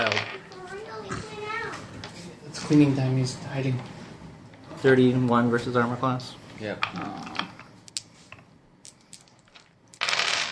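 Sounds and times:
many dice being rolled: 0.0 - 0.4, 8.8 - 10.5
speech: 2.7 - 4.0, 4.8 - 7.4.

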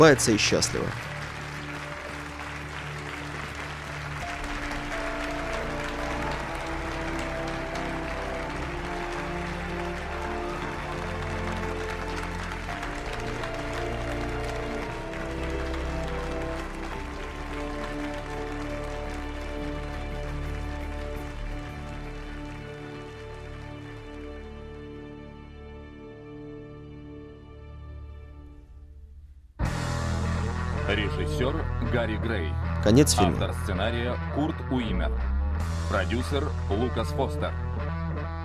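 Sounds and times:
speech: 0.0 - 1.1, 32.9 - 35.3, 35.9 - 37.6
theatre audience applauding: 0.0 - 25.7, 32.9 - 33.6
sustained music: 0.0 - 29.0, 29.6 - 38.4.

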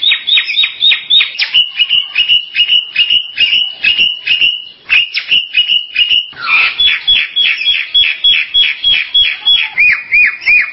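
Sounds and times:
Bali myna chirping: 0.0 - 10.7.

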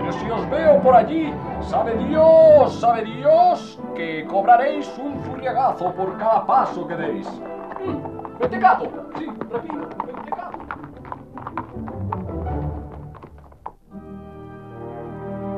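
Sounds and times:
speech: 0.1 - 10.4
horse hooves clip-clopping while riding: 4.4 - 14.1.

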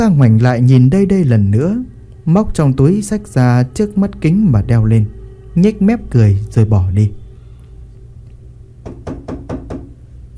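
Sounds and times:
speech: 0.0 - 7.2
low steady hum: 0.0 - 10.3
knocking on an old wooden door: 8.8 - 10.0.

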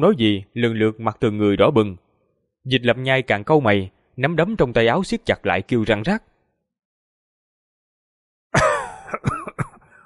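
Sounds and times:
speech: 0.0 - 2.0, 2.6 - 6.3, 8.5 - 9.4
person coughing violently: 8.6 - 10.0.

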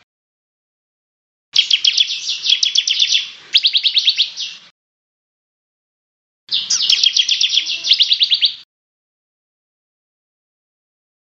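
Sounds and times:
bird song: 1.6 - 4.7, 6.5 - 8.7.

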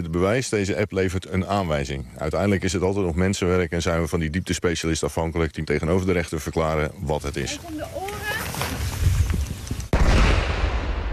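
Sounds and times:
speech: 0.0 - 8.8
fireworks crackling pops during a test: 7.6 - 11.1
fireworks loud bang: 9.9 - 11.1.

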